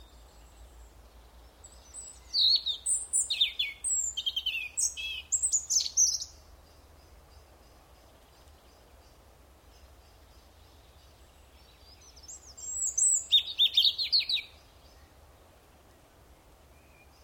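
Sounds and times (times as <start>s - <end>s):
European robin song: 1.6s - 9.2s, 10.0s - 15.2s, 16.7s - 17.2s.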